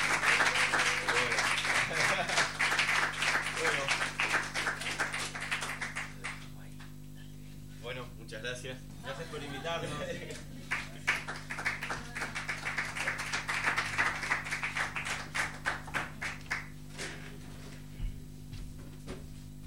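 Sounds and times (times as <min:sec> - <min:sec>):
laughter: 0:00.0 - 0:02.8, 0:09.0 - 0:11.3
audience applause at a poetry evening: 0:00.0 - 0:06.5, 0:10.2 - 0:16.8
speech: 0:09.6 - 0:10.5.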